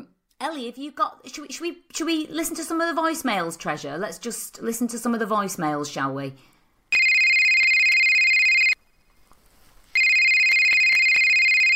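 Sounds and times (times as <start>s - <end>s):
speech: 0.4s - 6.5s
telephone ringing with a high electronic tone: 6.9s - 8.8s, 10.0s - 11.7s.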